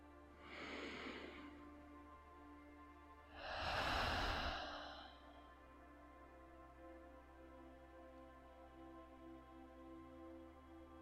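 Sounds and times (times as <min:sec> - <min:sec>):
deep breath in through the nose and out through the mouth: 0:00.4 - 0:01.6, 0:03.3 - 0:05.4.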